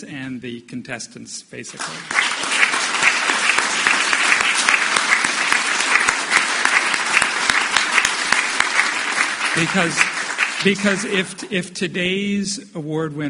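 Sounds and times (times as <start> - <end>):
speech: 0.0 - 2.3, 9.6 - 13.2
audience applause: 1.7 - 11.4.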